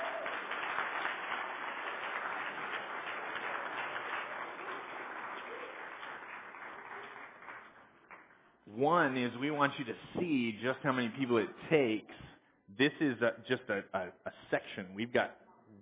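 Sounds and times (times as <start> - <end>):
audience round of applause: 0.0 - 8.3
speech: 8.8 - 15.4.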